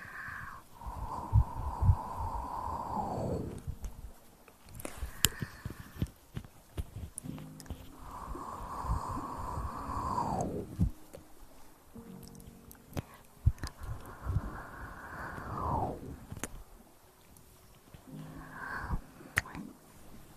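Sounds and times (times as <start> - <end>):
breathy rushes of air from the mouth: 0.0 - 4.1, 4.7 - 6.4, 7.7 - 11.2, 12.9 - 16.5, 18.0 - 20.3
mouth clicks, smacks and small wet pops: 3.0 - 9.2, 12.2 - 14.6, 15.2 - 16.6, 17.9 - 19.8.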